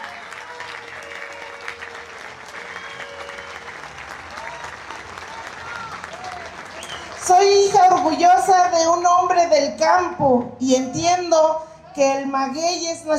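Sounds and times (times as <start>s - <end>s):
audience applause: 0.0s - 8.5s
speech: 7.2s - 13.1s.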